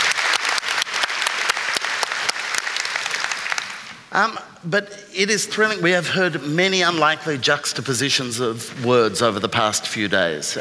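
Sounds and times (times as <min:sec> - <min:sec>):
audience applause: 0:00.0 - 0:04.1
speech: 0:04.1 - 0:10.5.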